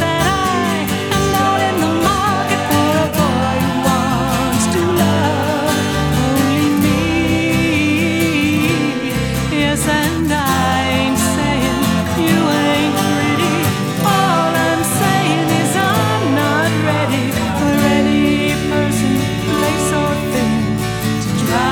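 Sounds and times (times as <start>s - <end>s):
acoustic band playing: 0.0s - 21.7s.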